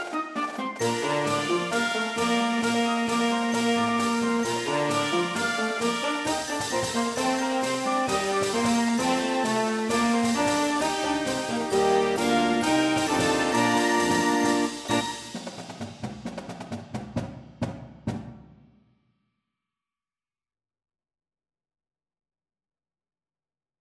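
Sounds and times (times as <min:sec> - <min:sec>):
band playing a fight song medley: 0:00.0 - 0:15.9.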